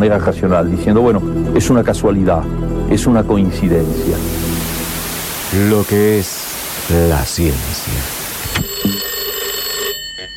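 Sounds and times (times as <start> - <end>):
speech: 0.0 - 4.5, 5.5 - 8.2
telephone ringing with a trilling bell tone: 8.2 - 10.3.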